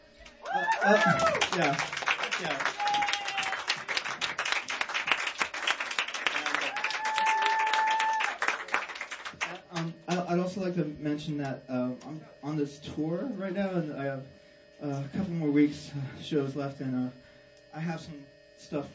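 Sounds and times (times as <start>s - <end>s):
people whooping: 0.2s - 9.6s
audience applause: 0.2s - 9.9s
speech: 0.8s - 2.8s, 10.6s - 17.2s, 17.8s - 18.9s.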